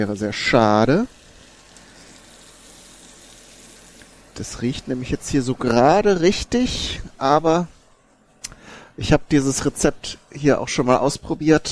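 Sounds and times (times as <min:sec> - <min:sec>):
speech: 0:00.0 - 0:01.2, 0:04.4 - 0:07.8, 0:09.0 - 0:11.6
bacon sizzling in a frying pan for spaghetti carbonara: 0:00.0 - 0:04.9.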